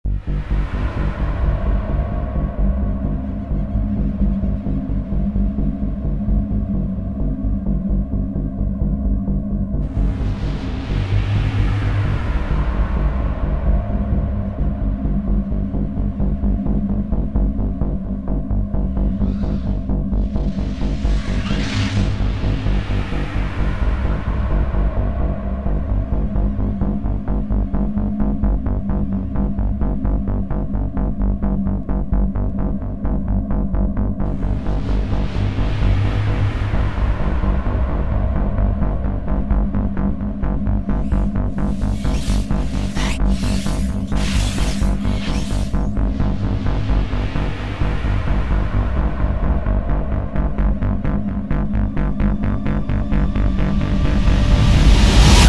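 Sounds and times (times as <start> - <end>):
noise: 0.0 - 55.4.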